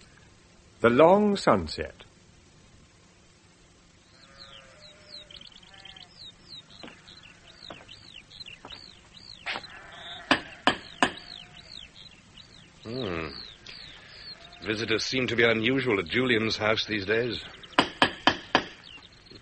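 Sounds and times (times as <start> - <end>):
speech: 0.8 - 2.0, 14.7 - 17.6
sheep bleating on a prosperous farm in 410 AD: 4.1 - 7.9, 9.5 - 11.9, 13.1 - 14.9.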